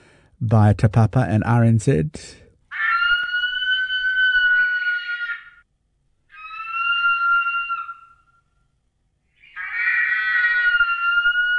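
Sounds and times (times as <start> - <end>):
speech: 0.4 - 2.4
reimagined cry of the biggest eagle there ever was: 2.7 - 5.6, 6.3 - 8.5, 9.4 - 11.5.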